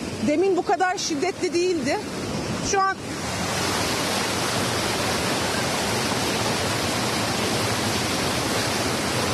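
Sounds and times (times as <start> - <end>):
speech: 0.2 - 3.3
rainwater rushing onto soil: 1.8 - 9.3.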